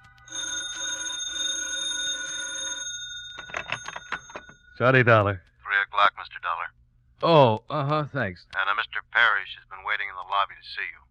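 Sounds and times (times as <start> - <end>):
telephone bell ringing for hotel wake-up call: 0.1 - 4.8
clattering noise: 3.2 - 4.8
speech: 4.8 - 6.1, 7.2 - 8.7, 10.4 - 11.0.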